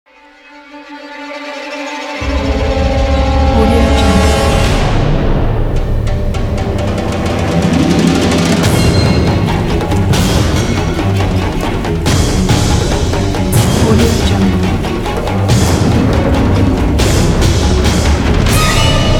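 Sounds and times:
chaotic orchestral action music: 0.5s - 19.1s.

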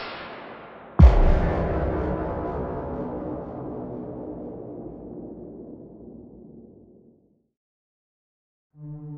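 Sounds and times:
big impact hits: 0.4s - 6.5s.

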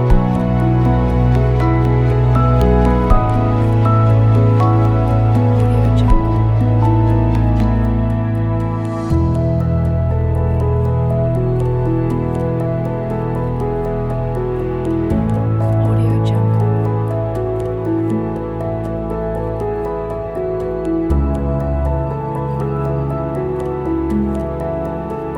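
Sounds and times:
atmospheric background: 0.0s - 25.3s.

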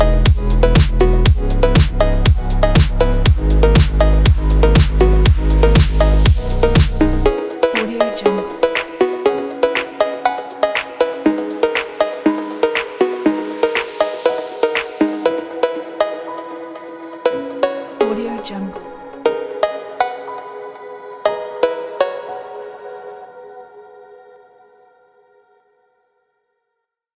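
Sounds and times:
uplifting phonk music: 0.0s - 20.6s.

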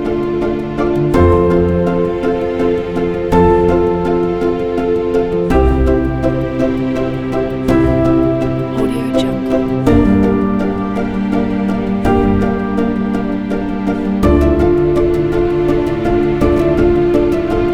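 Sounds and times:
romantic peaceful felt piano: 0.0s - 17.7s.

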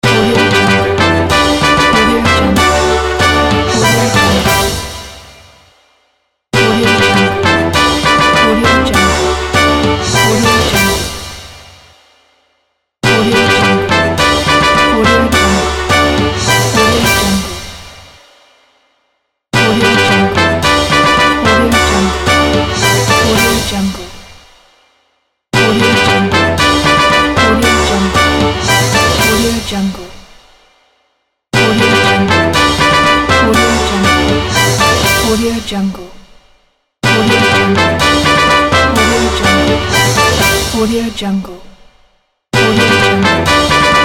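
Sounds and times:
fanfare: 0.0s - 5.5s, 6.6s - 11.3s, 13.0s - 17.7s, 19.6s - 24.0s, 25.6s - 29.7s, 31.6s - 35.7s, 37.0s - 40.9s, 42.6s - 44.0s.

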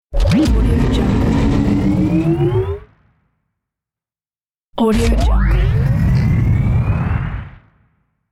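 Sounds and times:
futuristic boost engine start: 0.2s - 3.2s, 5.1s - 7.8s.

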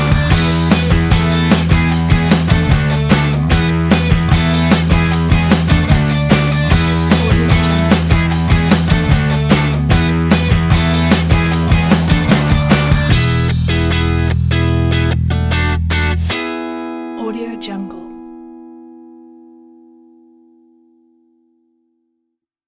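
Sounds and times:
indie rock music: 0.0s - 16.8s.

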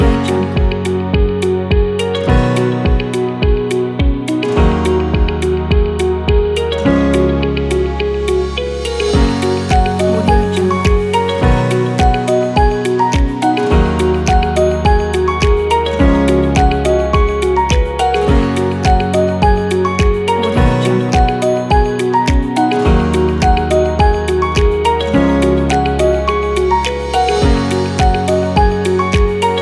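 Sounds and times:
inspiring motivational corporate background music: 0.0s - 29.5s.

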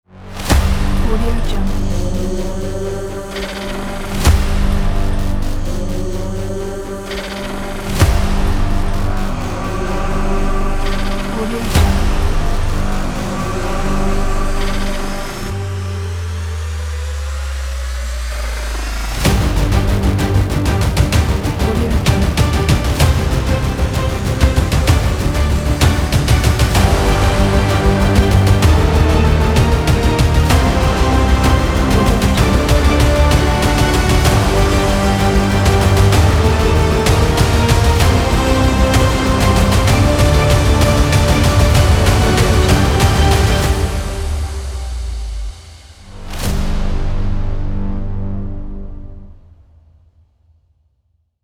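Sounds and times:
film trailer music: 0.0s - 50.2s.

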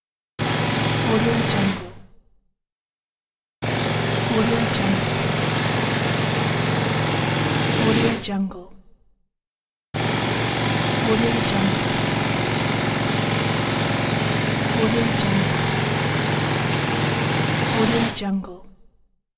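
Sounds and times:
jackhammer: 0.4s - 2.0s, 3.6s - 8.3s, 10.0s - 18.2s.

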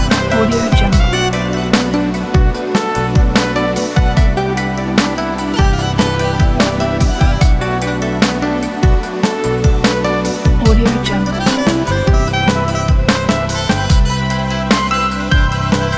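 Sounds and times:
relaxing saxophone soul music: 0.0s - 15.9s.

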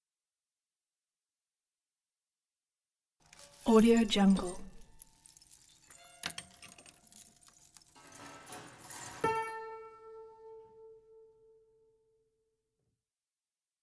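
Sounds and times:
broken piano: 3.3s - 9.6s.

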